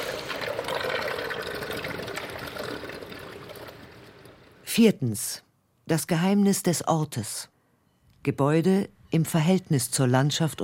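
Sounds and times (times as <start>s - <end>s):
water splashing: 0.0s - 4.6s
speech: 4.8s - 7.5s, 8.2s - 10.6s.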